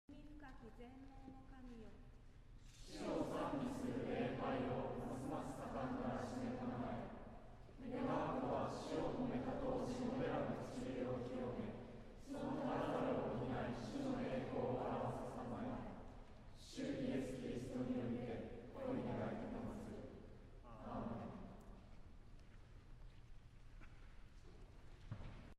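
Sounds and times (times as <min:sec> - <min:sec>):
choir singing: 0:02.8 - 0:21.8.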